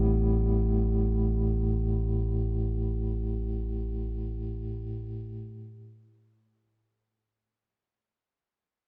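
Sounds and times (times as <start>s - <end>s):
dry clean modern electric guitar: 0.0s - 6.0s.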